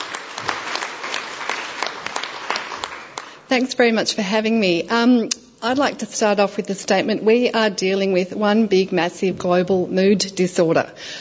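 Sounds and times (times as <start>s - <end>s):
audience applause welcoming a speaker: 0.0s - 3.5s
speech: 3.5s - 11.1s.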